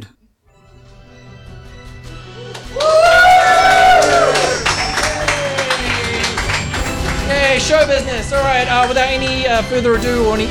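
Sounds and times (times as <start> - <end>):
audience applause and cheering: 2.4 - 8.1
speech: 7.7 - 10.5.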